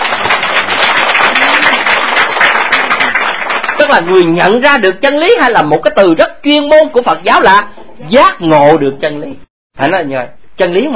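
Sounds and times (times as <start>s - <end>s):
audience applause: 0.0s - 4.3s
speech: 3.9s - 10.9s.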